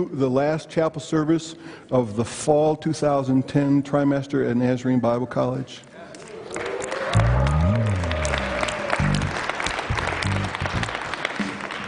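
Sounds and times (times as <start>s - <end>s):
speech: 0.0s - 6.0s
crowd clapping: 6.1s - 11.8s
rising vocal tone: 7.0s - 9.4s.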